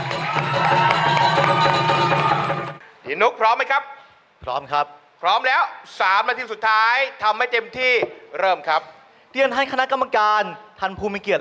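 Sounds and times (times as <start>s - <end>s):
audience applause: 0.0s - 2.8s
speech: 3.1s - 11.3s.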